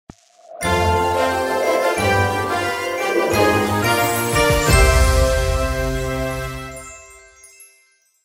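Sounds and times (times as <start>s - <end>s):
unlock music: 0.7s - 7.2s.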